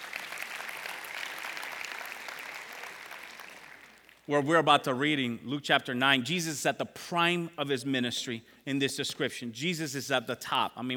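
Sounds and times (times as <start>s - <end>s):
audience clapping: 0.0s - 4.3s
speech: 4.3s - 10.9s.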